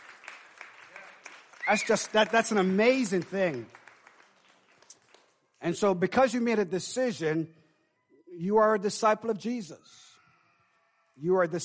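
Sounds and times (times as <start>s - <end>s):
crowd clapping hands: 0.0s - 5.8s
speech: 1.7s - 3.8s, 5.6s - 7.6s, 8.4s - 10.1s, 11.2s - 11.6s.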